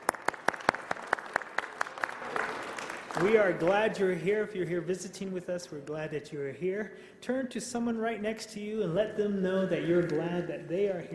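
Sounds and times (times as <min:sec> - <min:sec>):
audience clapping at a Wednesday evening chapel service: 0:00.0 - 0:04.2
speech: 0:03.2 - 0:11.1.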